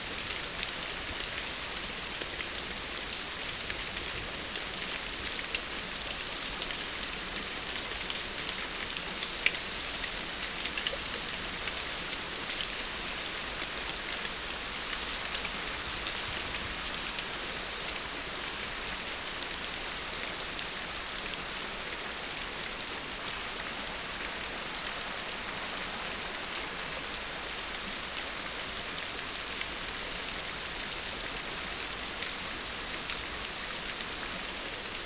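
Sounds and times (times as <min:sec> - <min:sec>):
rain in a forest: 0:00.0 - 0:34.9.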